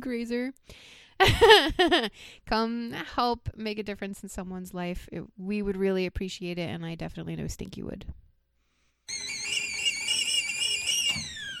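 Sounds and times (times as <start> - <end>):
speech: 0.0 - 8.2
kettle whistling: 9.1 - 11.5.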